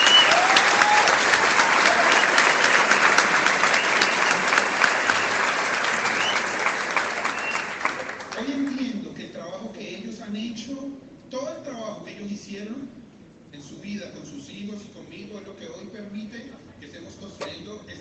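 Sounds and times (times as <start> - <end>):
applause: 0.0 - 8.8.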